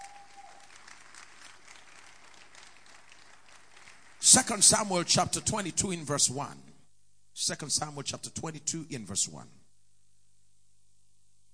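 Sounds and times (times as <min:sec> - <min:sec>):
audience clapping: 0:00.0 - 0:05.2
speech: 0:04.3 - 0:06.7, 0:07.5 - 0:09.6.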